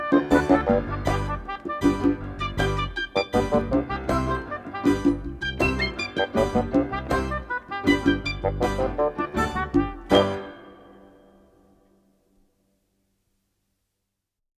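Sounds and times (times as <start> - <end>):
reggae music: 0.0 - 11.2.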